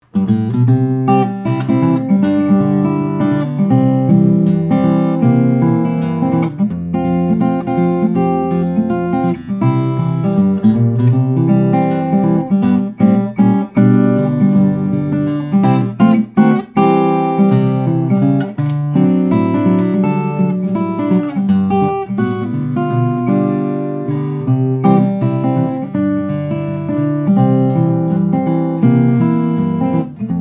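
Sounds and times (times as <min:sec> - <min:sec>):
guitars: 0:00.0 - 0:30.4.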